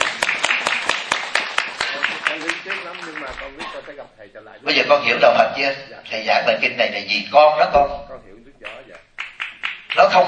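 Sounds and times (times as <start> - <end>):
audience clapping: 0.0 - 4.1, 8.6 - 10.2
speech: 2.9 - 8.9, 10.0 - 10.2.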